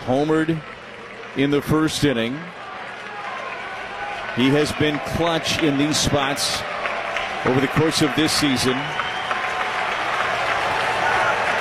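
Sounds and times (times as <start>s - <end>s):
speech: 0.0s - 0.8s, 1.4s - 2.6s, 4.4s - 6.7s, 7.4s - 9.0s
stadium crowd cheering: 0.0s - 11.6s.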